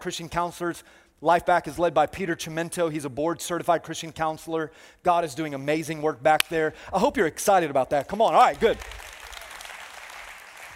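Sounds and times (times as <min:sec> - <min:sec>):
speech: 0:00.0 - 0:09.1
audience applause: 0:08.5 - 0:10.7.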